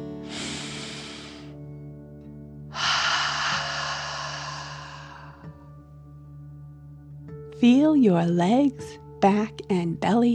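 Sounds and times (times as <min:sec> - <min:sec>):
deep breath in through nose and out through mouth: 0:00.1 - 0:01.7, 0:02.7 - 0:05.8
speech: 0:07.6 - 0:10.3.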